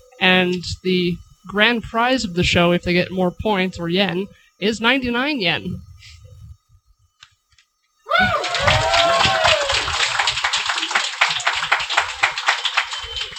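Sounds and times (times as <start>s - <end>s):
speech: 0.2s - 6.2s
audience applause: 8.1s - 13.3s
people cheering: 8.1s - 13.3s.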